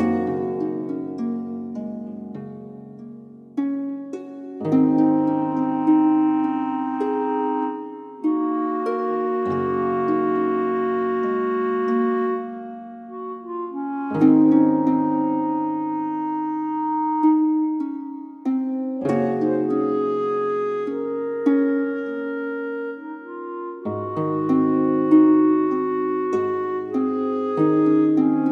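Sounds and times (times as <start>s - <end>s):
tavern music: 0.0s - 28.5s.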